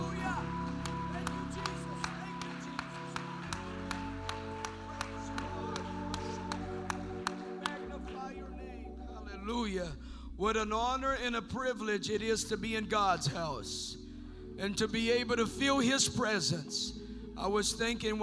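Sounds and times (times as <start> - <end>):
audience clapping in rhythm: 0.0 - 8.7
sustained keyboard chords: 0.0 - 18.2
speech: 9.7 - 14.0, 14.6 - 18.2.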